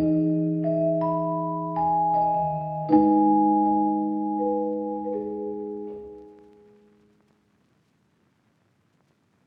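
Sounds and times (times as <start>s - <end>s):
G# minor keys melody at 160 BPM: 0.0s - 7.0s.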